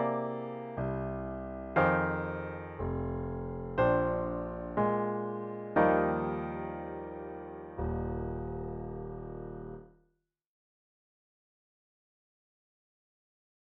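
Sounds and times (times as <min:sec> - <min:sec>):
solo piano: 0:00.0 - 0:09.9.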